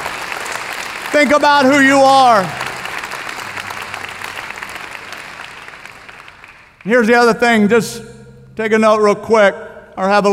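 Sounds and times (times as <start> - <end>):
audience clapping: 0.0 - 7.3
speech: 1.1 - 2.6, 6.8 - 10.3.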